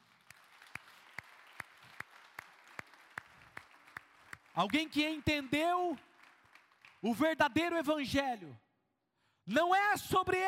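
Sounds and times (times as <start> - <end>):
audience applause: 0.0 - 7.3
speech: 4.6 - 6.1, 7.0 - 8.6, 9.5 - 10.4.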